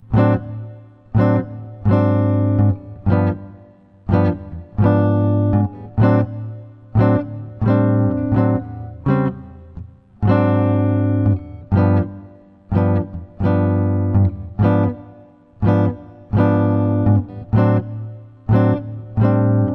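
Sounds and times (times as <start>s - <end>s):
jazz comping chords: 0.0s - 19.7s.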